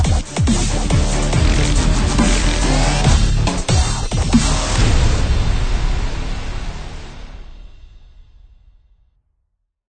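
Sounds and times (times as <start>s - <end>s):
heavily modulated dubstep bass: 0.0s - 7.4s
hard-hitting rock percussion instruments: 0.0s - 8.0s
cinematic strings: 0.5s - 7.8s.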